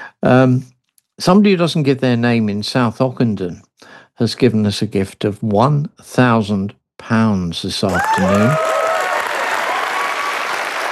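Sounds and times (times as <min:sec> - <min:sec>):
speech: 0:00.2 - 0:08.8
audience applause at a fundraising appeal: 0:07.9 - 0:10.9.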